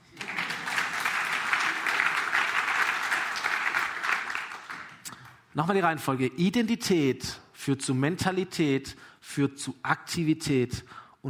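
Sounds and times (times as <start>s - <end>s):
audience applause: 0.0s - 5.0s
speech: 5.6s - 11.2s.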